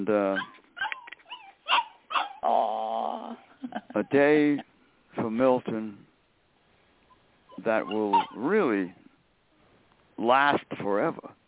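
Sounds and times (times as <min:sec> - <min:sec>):
speech: 0:00.0 - 0:00.6, 0:03.7 - 0:06.0, 0:07.6 - 0:09.0, 0:10.2 - 0:11.4
dog yipping and whimpering: 0:00.3 - 0:02.7, 0:07.1 - 0:08.5
dog howling bark: 0:00.4 - 0:02.5.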